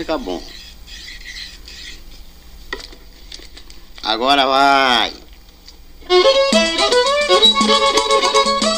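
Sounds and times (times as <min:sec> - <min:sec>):
speech: 0:00.0 - 0:00.6, 0:04.0 - 0:05.2, 0:06.1 - 0:08.6
rosin block rubbed along a violin bow: 0:00.4 - 0:02.3.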